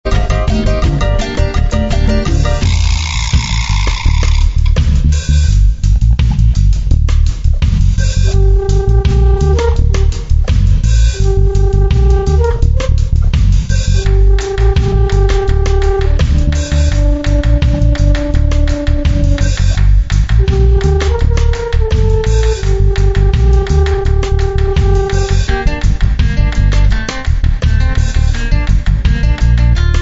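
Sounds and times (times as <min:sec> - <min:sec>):
cumbia music: 0:00.0 - 0:29.9.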